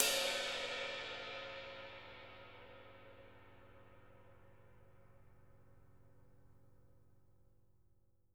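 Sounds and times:
ride cymbal: 0:00.0 - 0:04.6.

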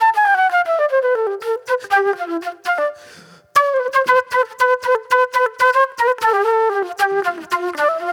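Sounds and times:
old soul flute music: 0:00.0 - 0:08.1.

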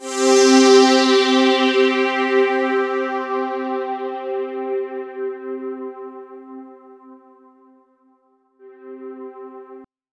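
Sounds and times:
Roland JV 2080 poly saw synth note C3: 0:00.0 - 0:08.0, 0:08.6 - 0:09.8.

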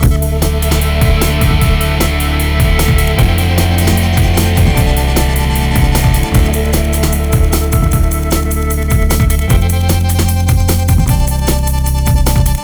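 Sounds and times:
hardcore breakbeat in D minor: 0:00.0 - 0:12.6.

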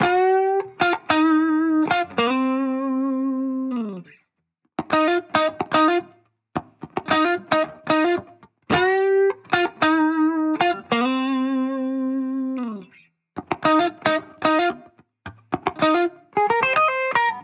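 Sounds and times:
1970s-style guitar in G sharp at 110 BPM: 0:00.0 - 0:04.2, 0:04.8 - 0:17.4.

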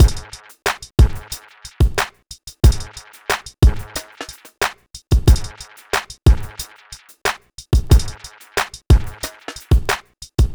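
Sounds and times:
hip hop drums: 0:00.0 - 0:10.5.

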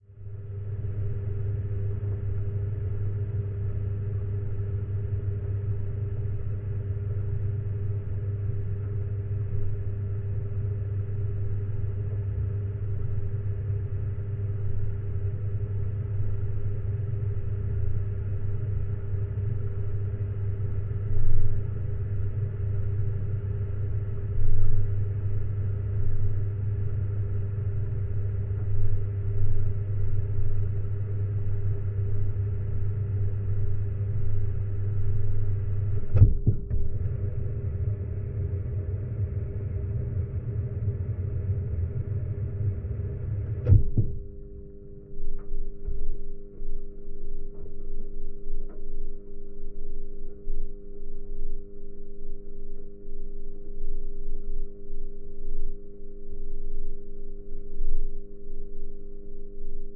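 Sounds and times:
geophone recording of dark rumbling drone: 0:00.0 - 0:59.9.

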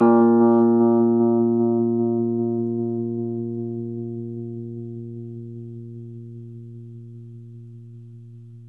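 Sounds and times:
Rhodes 73 electric piano playing slowly: 0:00.0 - 0:06.2.

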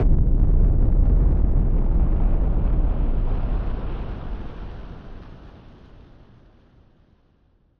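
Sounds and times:
noise bomb rumbler: 0:00.0 - 0:05.2.

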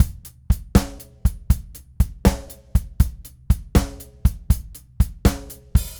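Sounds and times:
drum groove: 0:00.0 - 0:05.9.

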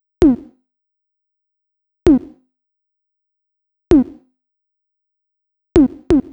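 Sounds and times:
tom drum loop at 130 bpm: 0:05.8 - 0:06.3.

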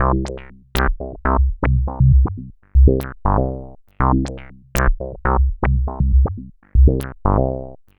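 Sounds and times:
proto-techno bassline: 0:00.0 - 0:07.6.

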